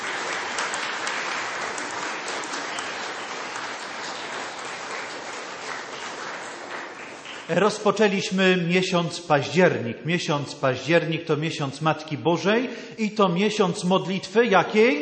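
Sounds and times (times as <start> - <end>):
warm applause from gathered audience: 0.0 - 7.9
speech: 7.5 - 14.9.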